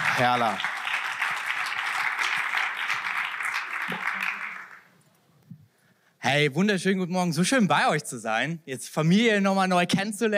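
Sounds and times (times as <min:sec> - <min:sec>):
audience applause: 0:00.0 - 0:04.9
speech: 0:00.2 - 0:00.7, 0:06.3 - 0:10.3.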